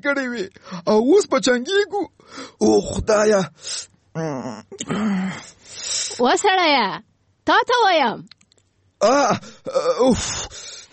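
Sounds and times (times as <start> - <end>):
speech: 0.0 - 8.4, 9.0 - 10.8
person moaning and crying in their sleep during a bad dream: 2.5 - 3.5, 4.2 - 5.6, 9.0 - 10.9.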